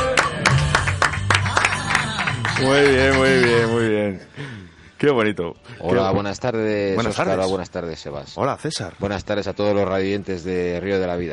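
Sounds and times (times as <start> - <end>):
small group applauding: 0.0 - 3.9
speech: 2.6 - 11.3.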